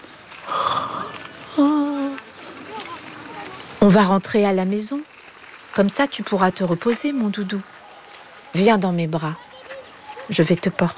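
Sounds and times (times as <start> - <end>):
yawning: 0.4 - 2.2
speech: 3.9 - 5.1, 5.8 - 7.7, 8.5 - 9.4, 10.3 - 10.9.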